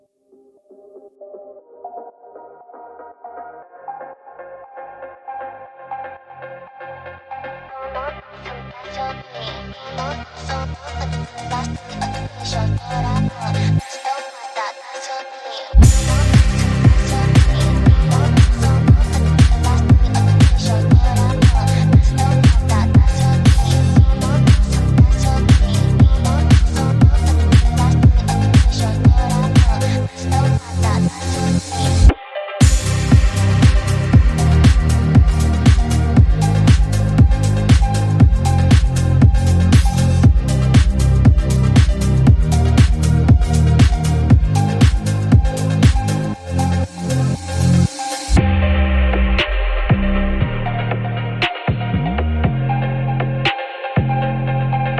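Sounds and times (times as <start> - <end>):
boosted bass: 9.4 - 13.8, 15.8 - 54.9.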